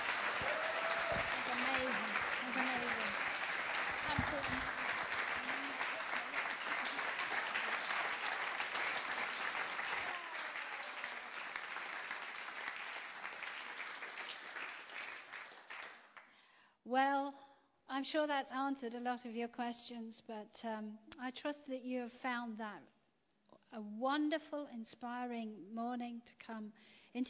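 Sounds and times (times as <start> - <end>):
audience applause: 0.0 - 16.3
speech: 18.0 - 23.0, 23.7 - 27.2.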